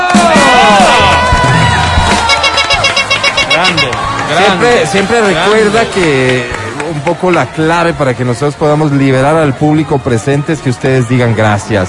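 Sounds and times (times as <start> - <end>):
audience applause: 0.0 - 9.4
speech: 4.5 - 11.8.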